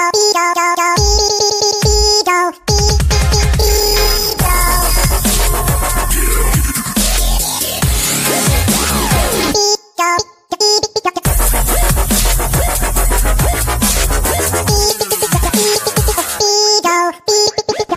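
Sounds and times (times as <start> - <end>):
funny dub ringtone: 0.1 - 9.8, 10.6 - 17.8.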